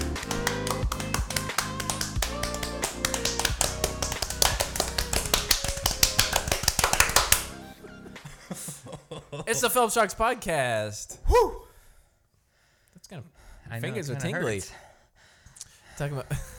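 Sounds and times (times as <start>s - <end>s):
rapid hand clapping: 0.0s - 7.6s
laughter: 7.8s - 9.9s
speech: 9.5s - 11.6s, 13.1s - 14.9s, 16.0s - 16.5s.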